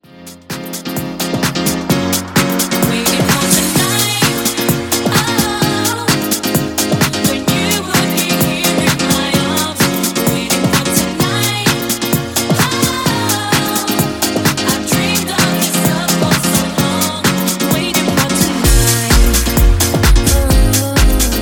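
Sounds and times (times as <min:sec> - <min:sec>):
house music: 0:00.0 - 0:21.4.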